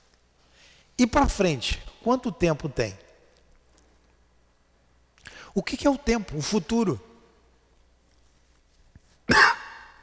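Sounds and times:
speech: 1.0s - 3.0s, 5.6s - 7.1s
speaker coughing: 9.3s - 10.0s.

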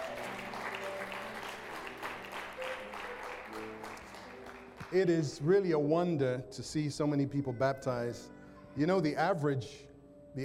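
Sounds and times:
audience applause: 0.0s - 4.9s
speech: 4.9s - 10.4s.

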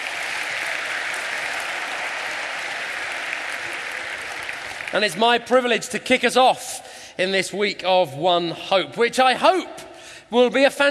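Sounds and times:
audience applause: 0.0s - 5.2s
speech: 4.9s - 10.9s.

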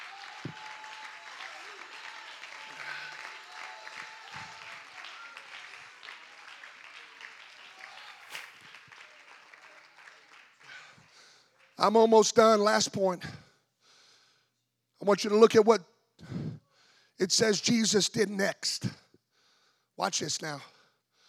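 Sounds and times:
audience applause: 0.0s - 11.9s
speech: 11.8s - 13.4s, 15.1s - 15.9s, 17.2s - 19.0s, 20.0s - 20.7s.

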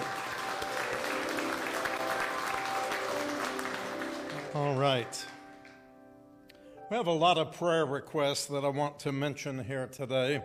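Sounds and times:
audience applause: 0.0s - 5.8s
speech: 4.6s - 5.3s, 6.9s - 10.4s.

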